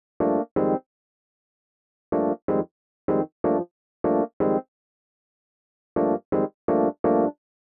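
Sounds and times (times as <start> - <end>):
Rhodes electric piano in A: 0.2 - 0.8, 2.2 - 4.6, 6.0 - 7.4.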